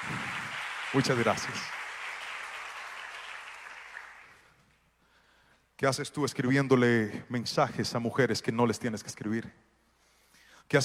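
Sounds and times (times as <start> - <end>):
audience applause: 0.0 - 4.5
speech: 0.9 - 1.8, 5.8 - 9.7, 10.7 - 10.8.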